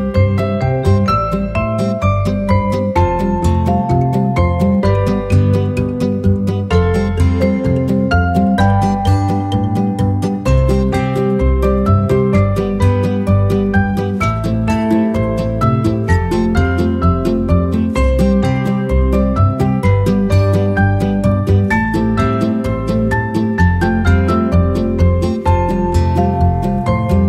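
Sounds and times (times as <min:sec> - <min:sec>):
acoustic band playing: 0:00.0 - 0:27.2.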